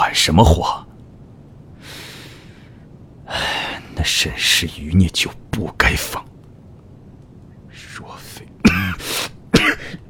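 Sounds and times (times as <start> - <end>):
speech: 0.2 - 0.9, 4.0 - 6.4
man coughing at his desk: 8.6 - 10.0.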